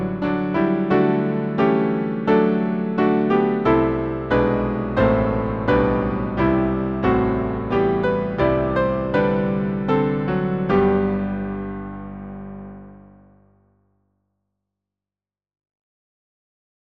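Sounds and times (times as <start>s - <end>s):
hymn on piano: 0.0s - 13.4s.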